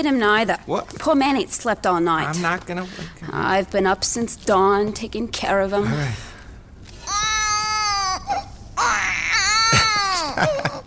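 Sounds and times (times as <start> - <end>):
speech: 0.0 - 6.3, 10.4 - 10.7
baby crying: 7.0 - 10.8.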